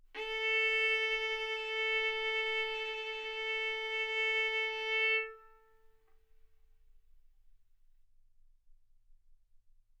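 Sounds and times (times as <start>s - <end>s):
violin bowed arco notes: 0.2s - 5.9s.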